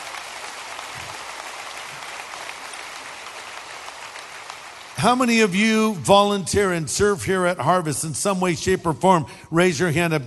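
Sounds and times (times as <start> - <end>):
audience applauding volunteers: 0.0 - 5.6
speech: 5.0 - 10.2.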